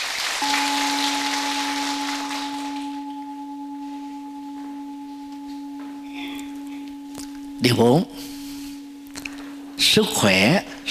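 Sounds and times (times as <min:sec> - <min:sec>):
audience applause: 0:00.0 - 0:03.0
speech: 0:00.4 - 0:00.8, 0:07.6 - 0:08.3, 0:10.0 - 0:10.8
constant low electronic tone: 0:00.4 - 0:10.8.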